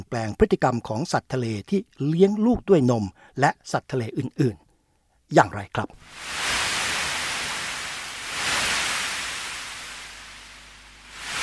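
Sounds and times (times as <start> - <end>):
speech: 0.1 - 4.6, 5.3 - 6.7
ocean waves rolling and crashing: 6.0 - 11.4.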